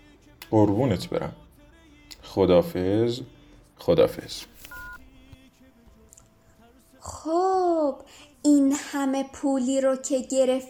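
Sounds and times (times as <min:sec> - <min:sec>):
speech: 0:00.5 - 0:01.4, 0:02.3 - 0:04.5, 0:07.2 - 0:10.6
electronic phone keypad beep: 0:04.7 - 0:05.0.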